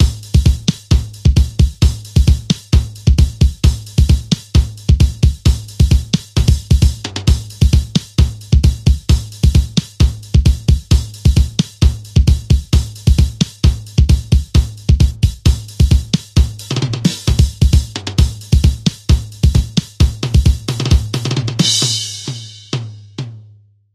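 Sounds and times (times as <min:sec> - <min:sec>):
drum: 0:00.0 - 0:23.4.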